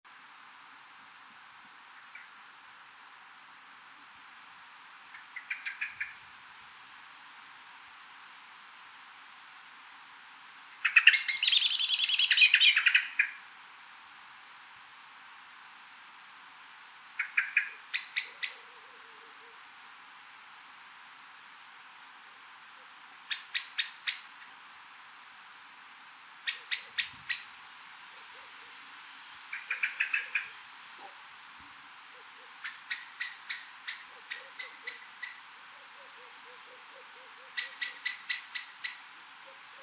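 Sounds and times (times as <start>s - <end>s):
Eurasian blackbird chinking calls: 5.1s - 6.2s, 10.8s - 13.4s, 17.2s - 18.8s, 23.3s - 24.4s, 26.4s - 27.6s, 29.5s - 31.2s, 32.2s - 39.8s
speech: 10.9s - 11.5s.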